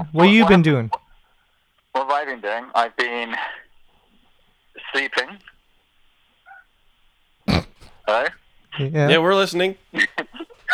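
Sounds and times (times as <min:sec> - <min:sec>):
speech: 0:00.0 - 0:01.0, 0:02.2 - 0:03.6, 0:04.8 - 0:05.5, 0:08.1 - 0:10.2
dog grunting: 0:07.5 - 0:08.1.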